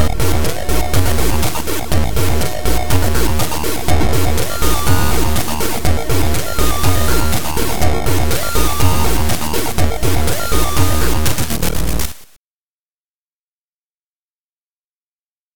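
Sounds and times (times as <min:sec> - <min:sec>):
turbo: 0:00.0 - 0:12.4.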